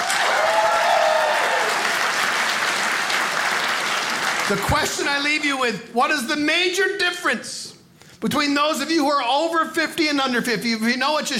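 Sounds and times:
faint cheers: 0.0s - 2.0s
crowd applause: 0.0s - 5.4s
speech: 4.5s - 11.3s.

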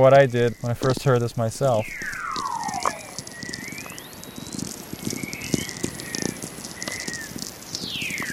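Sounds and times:
speech: 0.0s - 2.2s
Earth's natural radio waves via amplifier: 0.0s - 8.3s.

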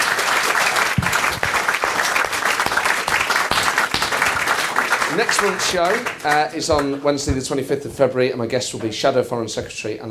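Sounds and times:
audience applause at show end: 0.0s - 7.4s
speech: 5.2s - 10.0s.

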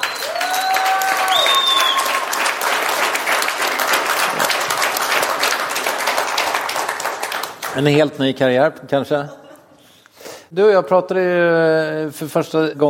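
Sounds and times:
audience applause: 0.0s - 8.0s
speech: 7.8s - 9.4s, 10.5s - 12.8s.

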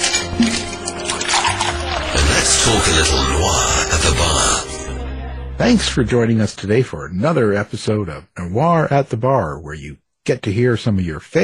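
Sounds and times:
drink pouring into a glass: 0.0s - 4.6s
speech: 0.4s - 0.7s, 2.6s - 4.6s, 5.6s - 11.4s.

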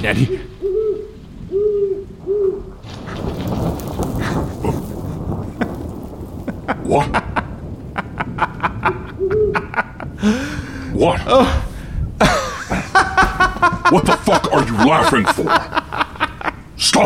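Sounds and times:
speech: 0.0s - 0.6s, 11.0s - 11.6s, 13.9s - 15.8s
broad rumbling wash with sharp crackling clicks: 0.0s - 17.0s
owl hooting: 0.3s - 2.7s
laughter: 6.5s - 10.5s, 12.2s - 17.0s.

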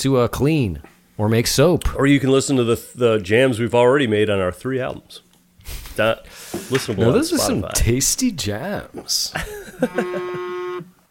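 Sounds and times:
speech: 0.0s - 10.4s
laughter: 9.4s - 10.5s
phone buzzing: 9.7s - 11.0s.

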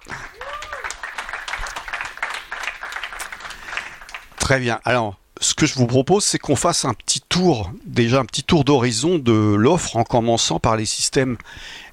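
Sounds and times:
audience applause: 0.0s - 4.6s
speech: 4.5s - 11.9s.

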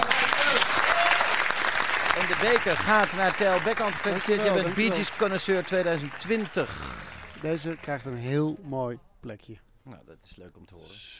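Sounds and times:
applause: 0.0s - 8.3s
speech: 2.4s - 11.1s.

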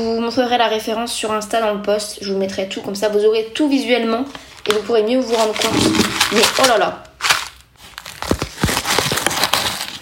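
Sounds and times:
speech: 0.0s - 7.1s
dry cocoa shells crunching underfoot: 4.6s - 10.0s.

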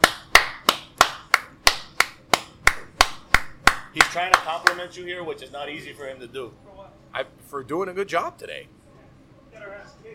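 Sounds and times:
people clapping: 0.0s - 4.9s
speech: 4.0s - 8.8s, 9.6s - 10.1s.

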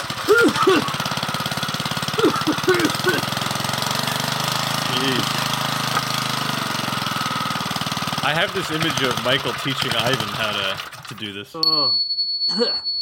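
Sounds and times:
old machine imagined as a random topic generator chugging in a garage: 0.0s - 11.5s
laughter: 0.3s - 1.1s, 2.1s - 3.4s
speech: 8.3s - 12.9s.

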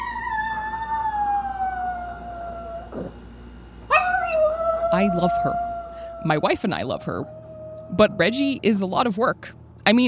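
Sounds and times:
chihuahua howling after owner leaves house: 0.0s - 3.1s, 3.8s - 8.8s
speech: 4.9s - 10.0s.

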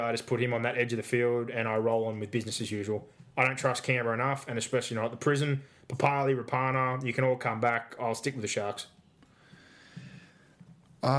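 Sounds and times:
speech: 0.0s - 9.0s
faint steady hiss: 0.0s - 11.1s
heavy snorting breathing: 9.4s - 10.6s.

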